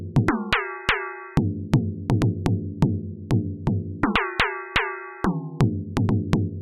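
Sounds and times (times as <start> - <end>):
tenor drum engine: 0.2 - 2.9, 4.0 - 6.4.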